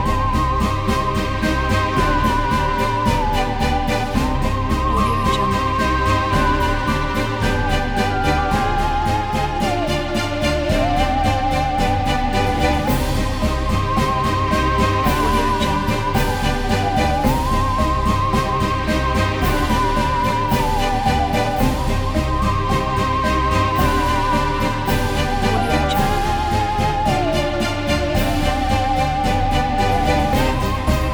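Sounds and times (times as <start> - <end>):
halloween creatures marching: 0.0 - 31.1.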